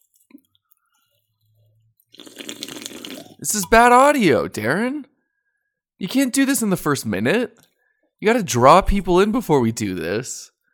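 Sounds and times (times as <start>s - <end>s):
loud slurping of an energy drink: 2.1s - 3.4s
speech: 3.4s - 5.1s, 6.0s - 10.5s.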